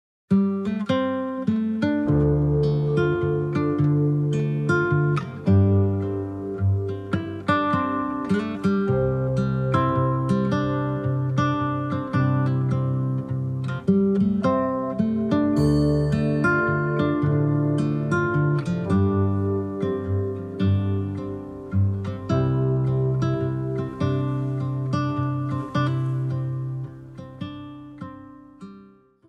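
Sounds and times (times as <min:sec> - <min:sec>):
music: 0:00.3 - 0:29.2.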